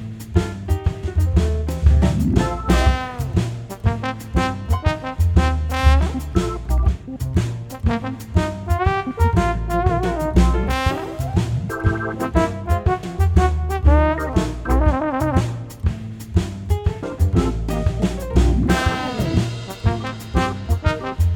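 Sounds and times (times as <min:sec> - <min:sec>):
trombone: 0:00.3 - 0:21.3.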